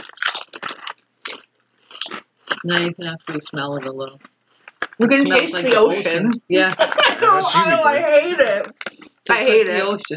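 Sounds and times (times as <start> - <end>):
seaweed snacks being bitten and chewed: 0.0 - 5.0
speech: 2.6 - 4.3, 5.0 - 10.1
laughter: 5.3 - 8.7.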